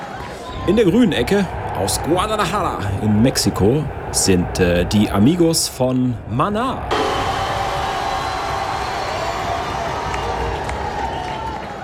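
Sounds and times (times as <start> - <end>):
speech: 0.7 - 7.1
applause: 7.8 - 11.8.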